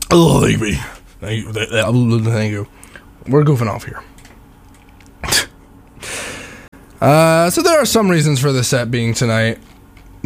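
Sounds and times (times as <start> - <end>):
speech: 0.1 - 4.1, 7.0 - 10.2
sneeze: 5.2 - 5.6
breathy exhale: 6.0 - 6.7.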